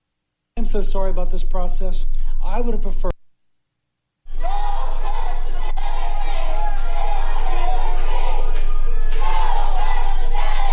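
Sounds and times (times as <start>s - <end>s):
speech: 0.7s - 3.1s
protest crowd chanting: 4.3s - 10.7s.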